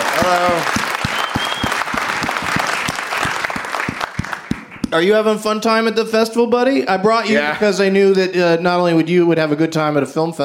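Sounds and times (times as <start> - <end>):
audience applause greeting a guest at a live show at a film festival: 0.0 - 4.9
speech: 0.2 - 0.8, 4.9 - 10.4.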